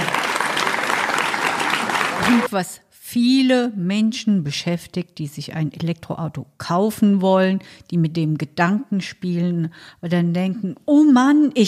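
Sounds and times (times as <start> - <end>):
applause: 0.0 - 2.5
speech: 2.3 - 11.6.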